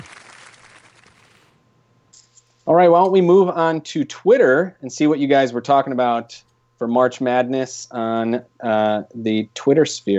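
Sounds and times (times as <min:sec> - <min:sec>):
applause: 0:00.0 - 0:01.2
speech: 0:02.7 - 0:10.1.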